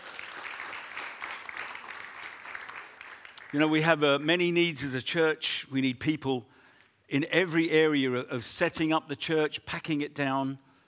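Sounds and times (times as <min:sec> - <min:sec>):
audience applause: 0:00.0 - 0:03.8
speech: 0:03.5 - 0:10.7.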